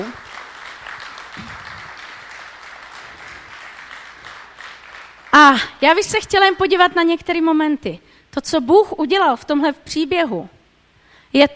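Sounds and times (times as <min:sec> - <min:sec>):
audience applauding the actors: 0:00.0 - 0:05.6
speech: 0:05.5 - 0:10.6, 0:11.3 - 0:11.5.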